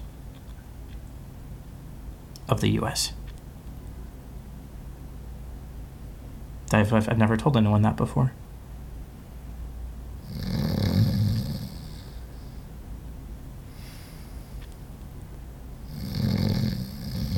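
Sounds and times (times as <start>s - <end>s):
speech: 2.5s - 3.2s, 6.7s - 8.4s
man breathing heavily while asleep: 10.2s - 12.8s, 13.6s - 14.7s, 15.9s - 17.3s.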